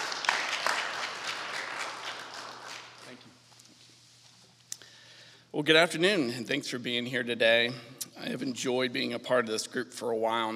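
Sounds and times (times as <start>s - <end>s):
audience applauding: 0.0s - 3.2s
speech: 5.6s - 10.5s.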